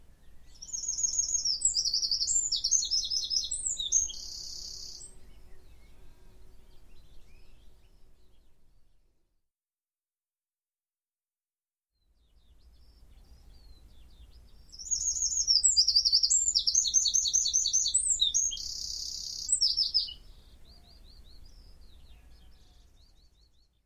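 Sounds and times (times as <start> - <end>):
Eurasian wren song of rapid high trills: 0.4 - 8.4, 13.0 - 23.6.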